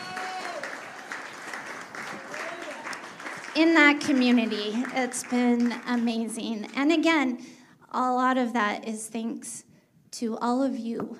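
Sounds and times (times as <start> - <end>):
congregation applause at a church service: 0.0 - 6.6
speech: 3.6 - 11.1.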